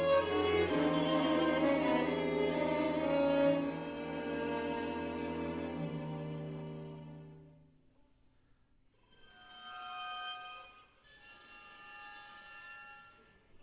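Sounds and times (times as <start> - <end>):
string quartet: 0.0 - 7.6.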